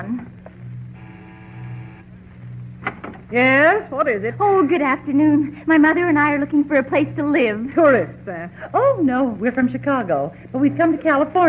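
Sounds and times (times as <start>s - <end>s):
low constant hum: 0.0s - 11.4s
doorbell buzzing: 0.8s - 2.2s
speech: 3.3s - 11.4s.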